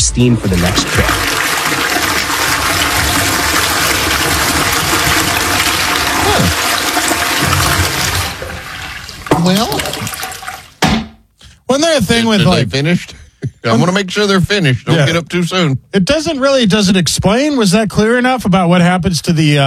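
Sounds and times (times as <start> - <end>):
water gurgle: 0.0 - 10.8
automated toilet flushing away solid and liquid waste: 0.0 - 10.9
speech: 0.1 - 1.3, 9.4 - 10.0, 12.0 - 19.6.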